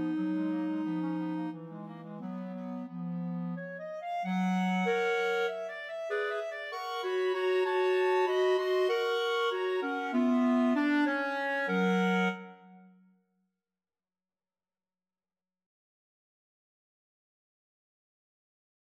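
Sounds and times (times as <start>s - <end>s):
clarinet trio playing a rhapsody: 0.0s - 12.9s.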